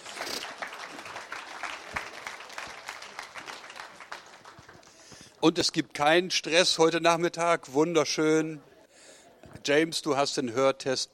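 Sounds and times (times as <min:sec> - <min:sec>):
applause: 0:00.0 - 0:05.1
speech: 0:05.4 - 0:08.7, 0:09.6 - 0:11.1.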